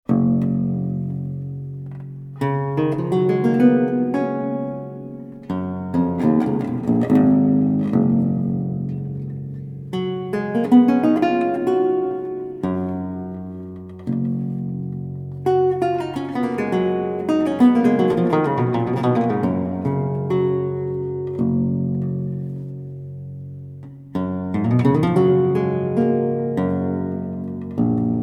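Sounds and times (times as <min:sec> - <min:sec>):
prelude on lute: 0:00.1 - 0:28.2.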